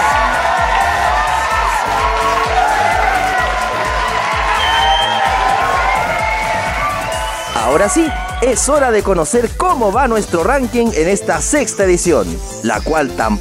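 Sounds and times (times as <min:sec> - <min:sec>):
loud thunderous applause: 0:00.0 - 0:08.9
speech: 0:07.8 - 0:13.3.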